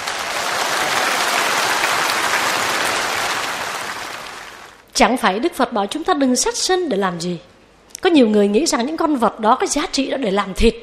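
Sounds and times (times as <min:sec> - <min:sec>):
audience applause: 0:00.0 - 0:04.8
speech: 0:05.0 - 0:10.8.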